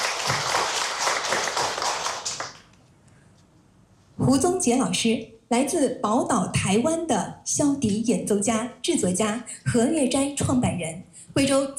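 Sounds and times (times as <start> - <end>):
audience applause: 0.0 - 2.7
speech: 4.3 - 11.7.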